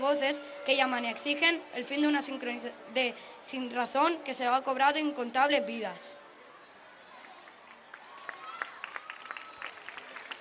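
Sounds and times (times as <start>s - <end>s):
speech: 0.1s - 6.2s
audience applause after a manifesto reading: 7.2s - 10.3s.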